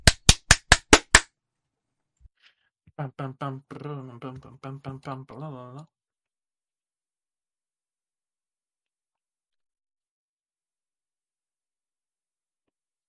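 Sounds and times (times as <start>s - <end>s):
quick sharp hand claps: 0.0s - 1.3s
person talking: 2.9s - 6.0s.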